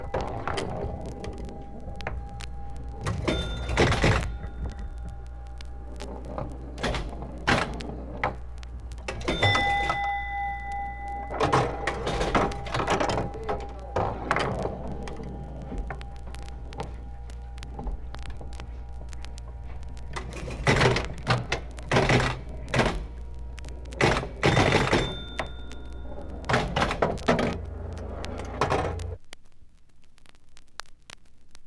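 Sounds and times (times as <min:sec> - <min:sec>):
pinball machine: 0:00.0 - 0:05.2, 0:06.1 - 0:17.0, 0:19.6 - 0:23.2, 0:24.0 - 0:29.2.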